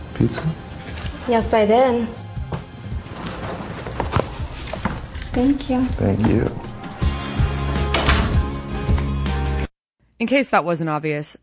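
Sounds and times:
speech: 0:00.2 - 0:00.7, 0:01.3 - 0:02.2, 0:05.4 - 0:06.6, 0:10.2 - 0:11.4
door being shut: 0:02.5 - 0:09.1.

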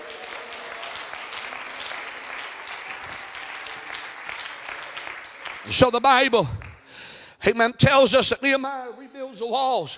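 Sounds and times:
audience clapping hands: 0:00.0 - 0:07.0
speech: 0:05.6 - 0:06.6, 0:07.4 - 0:09.9.

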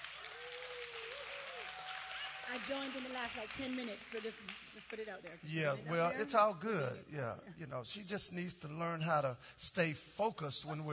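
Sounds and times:
crowd clapping: 0:00.0 - 0:05.8
speech: 0:02.5 - 0:10.9.

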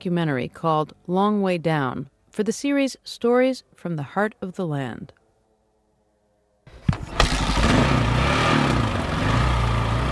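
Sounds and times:
speech: 0:00.0 - 0:05.2
motorcycle climbing a steep muddy logging road in the Sinfarosa Canyon: 0:06.8 - 0:10.0.

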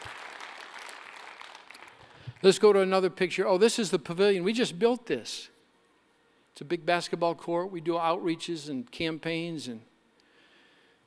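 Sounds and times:
audience clapping: 0:00.0 - 0:02.4
speech: 0:02.4 - 0:05.5, 0:06.6 - 0:09.9.

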